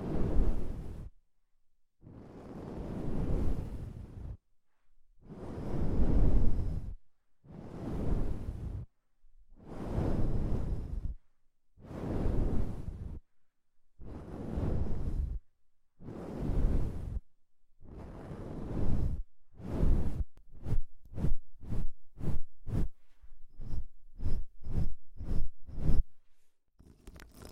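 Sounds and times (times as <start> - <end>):
deep ear cleaning whooshes: 0.0 - 1.1, 2.0 - 4.4, 5.2 - 8.8, 9.6 - 11.2, 11.8 - 13.2, 14.0 - 15.4, 16.0 - 17.2, 17.8 - 26.1
sharp rubbing strokes: 20.1 - 26.1.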